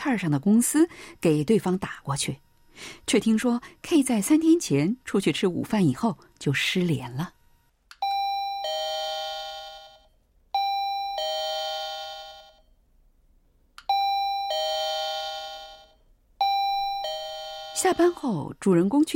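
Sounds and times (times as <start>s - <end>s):
speech: 0.0s - 7.4s, 17.8s - 19.1s
doorbell ringing: 8.0s - 12.7s, 13.9s - 18.2s.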